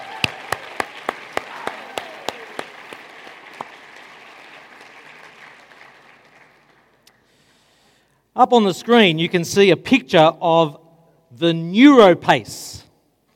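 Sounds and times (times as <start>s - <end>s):
audience applause: 0.0s - 7.4s
speech: 8.4s - 10.8s, 11.4s - 12.8s.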